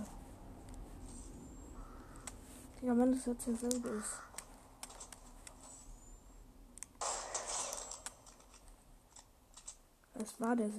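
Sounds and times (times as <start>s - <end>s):
low steady hum: 0.0s - 10.7s
ravens cawing: 1.7s - 2.4s, 3.8s - 4.5s
speech: 2.8s - 4.3s, 10.2s - 10.7s.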